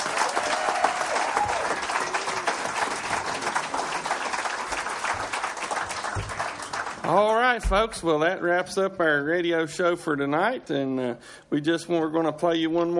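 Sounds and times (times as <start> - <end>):
crowd applauding: 0.0 - 7.6
speech: 7.1 - 12.9.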